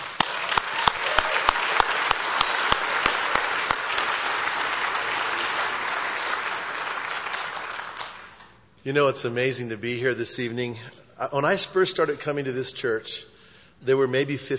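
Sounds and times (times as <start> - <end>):
church congregation applauding a guest pastor: 0.0 - 8.7
speech: 8.8 - 14.5.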